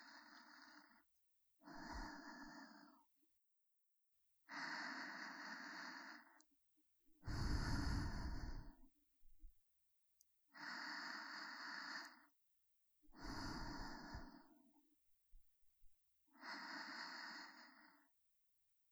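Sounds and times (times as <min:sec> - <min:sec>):
breathing in the right and left ear: 0:00.0 - 0:03.1, 0:04.5 - 0:06.4, 0:07.2 - 0:08.9, 0:10.5 - 0:12.3, 0:13.1 - 0:14.7, 0:16.3 - 0:18.2.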